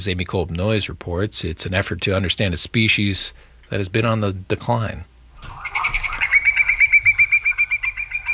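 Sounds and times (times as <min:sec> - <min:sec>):
speech: 0:00.0 - 0:05.1
Hudsonian whimbrel calling: 0:05.4 - 0:08.3.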